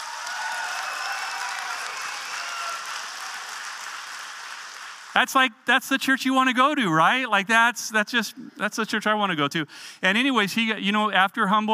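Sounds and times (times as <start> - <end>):
audience clapping: 0.0 - 5.4
speech: 5.2 - 11.7.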